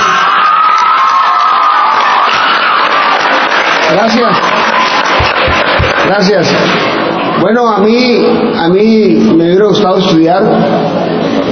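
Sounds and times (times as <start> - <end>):
audience applauding and cheering: 0.0 - 7.3
speech: 4.0 - 4.6, 6.1 - 6.8, 7.4 - 11.0.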